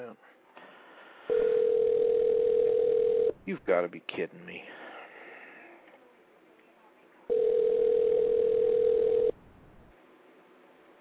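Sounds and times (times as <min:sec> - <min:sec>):
unanswered telephone call ringing tone: 0:01.3 - 0:03.4, 0:07.3 - 0:09.4
speech: 0:03.5 - 0:04.8.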